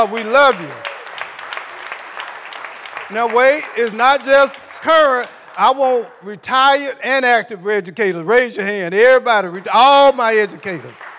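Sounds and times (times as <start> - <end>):
speech: 0.0 - 0.9, 3.1 - 11.0
audience clapping: 0.0 - 6.3, 9.5 - 11.1.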